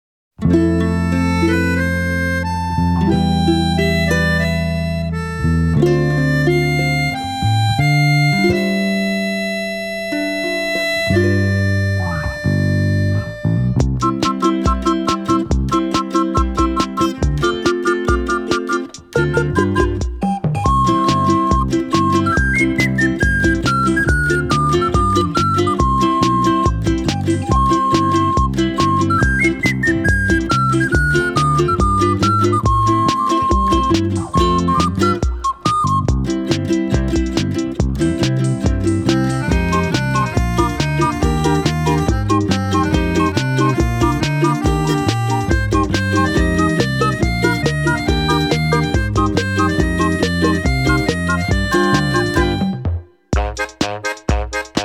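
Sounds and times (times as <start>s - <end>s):
acoustic medley: 0.4s - 54.8s.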